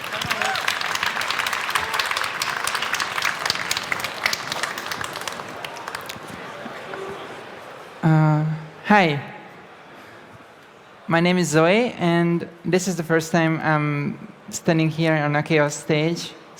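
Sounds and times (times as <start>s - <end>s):
audience applause welcoming a speaker onto a conference stage: 0.0s - 7.6s
speech: 8.0s - 9.3s, 11.1s - 16.5s.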